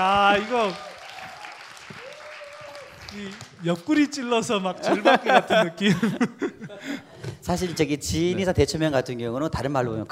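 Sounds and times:
speech: 0.0s - 0.9s, 3.1s - 10.1s
clapping: 0.3s - 3.9s
laughter: 4.7s - 8.0s.

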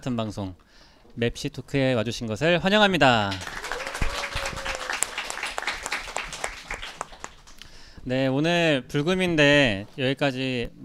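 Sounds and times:
speech: 0.0s - 3.6s, 8.0s - 10.8s
audience applause: 3.3s - 7.6s.

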